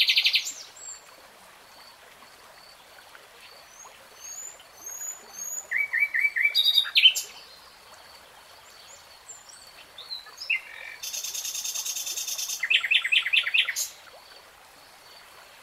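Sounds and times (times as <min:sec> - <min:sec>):
nightingale song: 0:00.0 - 0:01.0, 0:03.4 - 0:14.0.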